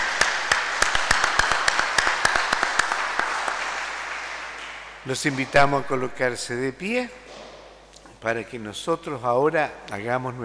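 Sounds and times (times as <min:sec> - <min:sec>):
audience applause: 0:00.0 - 0:05.8
speech: 0:05.0 - 0:07.2, 0:08.2 - 0:10.4.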